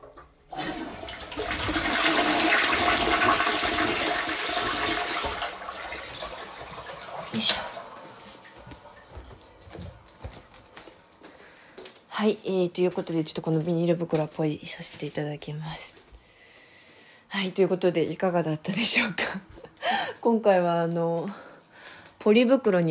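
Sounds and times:
toilet flushing: 0.0 - 9.6
speech: 12.2 - 16.1, 17.4 - 19.6, 20.2 - 21.5, 22.2 - 22.8.

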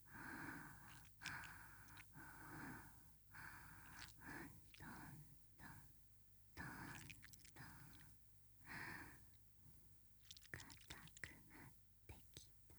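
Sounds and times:
breathing: 0.0 - 5.9, 6.6 - 9.3, 11.5 - 11.8.

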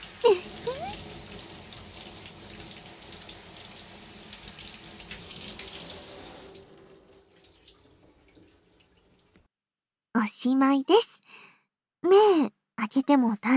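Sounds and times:
water running from a tap while rinsing hair at a sink: 0.0 - 9.5
speech: 10.2 - 11.2, 12.0 - 13.5.

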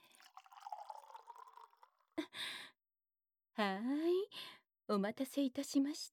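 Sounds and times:
sake poured in a gurgling trickle: 0.0 - 2.1
speech: 3.6 - 6.1.

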